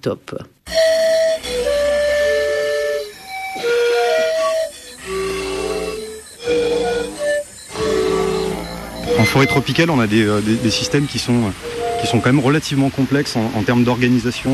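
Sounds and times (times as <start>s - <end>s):
speech: 0.0s - 0.8s, 9.2s - 14.5s
white-plumed antbird calls: 0.7s - 12.8s
tropical forest noise: 0.8s - 14.5s.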